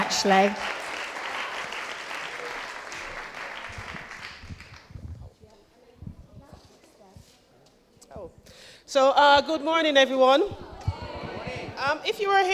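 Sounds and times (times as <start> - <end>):
audience applause: 0.0 - 5.0
speech: 0.2 - 0.8, 8.9 - 10.6, 11.8 - 12.5.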